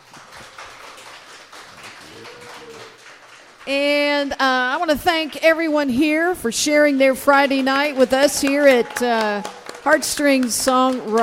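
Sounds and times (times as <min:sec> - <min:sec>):
audience applause: 0:00.0 - 0:03.7, 0:07.3 - 0:11.2
cheer or whoop: 0:02.0 - 0:03.0
speech: 0:03.6 - 0:11.2.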